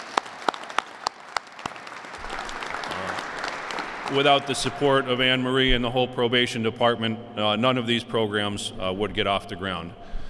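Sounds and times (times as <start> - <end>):
applause: 0.0 - 5.4
speech: 4.1 - 10.2.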